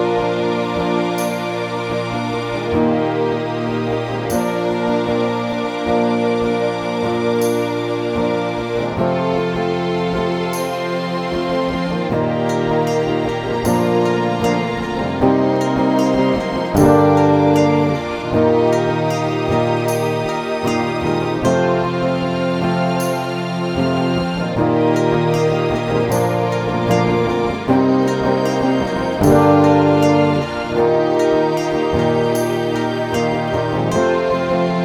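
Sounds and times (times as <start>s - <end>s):
orchestral backing music: 0.0s - 34.8s.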